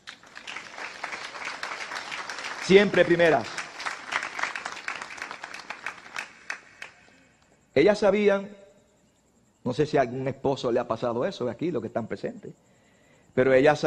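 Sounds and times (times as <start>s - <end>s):
audience applause: 0.0s - 7.2s
speech: 2.7s - 3.6s, 7.8s - 8.6s, 9.6s - 12.7s, 13.3s - 13.8s.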